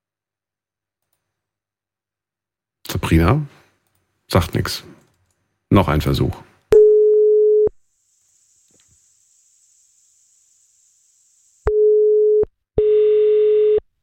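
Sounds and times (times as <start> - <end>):
speech: 3.0 - 3.6, 4.3 - 5.0, 5.7 - 6.5
telephone ringing tone: 6.8 - 7.7, 11.7 - 13.8.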